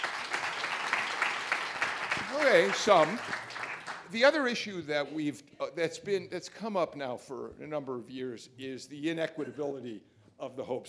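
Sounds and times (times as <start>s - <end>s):
crowd applauding: 0.0s - 4.4s
speech: 2.4s - 3.5s, 4.1s - 10.8s.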